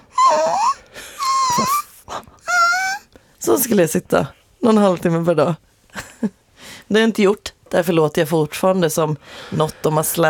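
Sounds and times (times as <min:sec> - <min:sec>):
voice imitating a whimpering puppy: 0:00.0 - 0:03.1
speech: 0:03.4 - 0:10.2.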